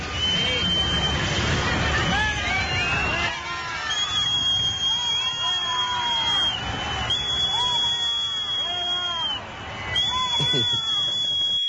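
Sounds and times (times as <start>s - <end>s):
spectator whistling like a stovetop coffee maker: 0.0s - 1.3s, 2.6s - 11.6s
loud crowd murmur: 0.0s - 11.6s
laughter: 10.1s - 11.2s.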